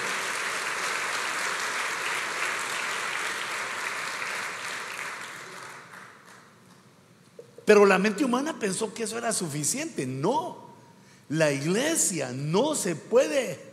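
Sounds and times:
audience applause: 0.0s - 6.4s
speech: 7.7s - 10.7s, 11.3s - 13.7s.

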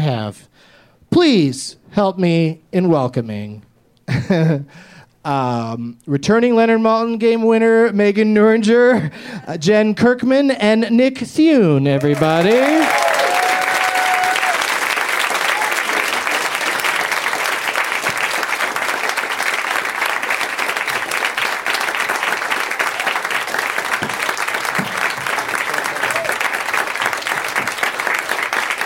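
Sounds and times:
speech: 0.1s - 13.1s
audience applause: 12.0s - 28.8s.

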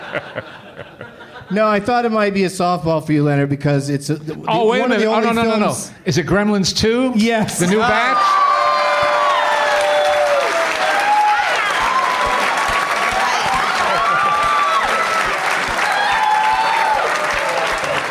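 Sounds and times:
laughter: 0.0s - 1.9s, 13.2s - 15.8s
speech: 0.1s - 8.4s
crowd clapping: 7.6s - 18.0s
whoops and cheering: 7.8s - 18.0s.

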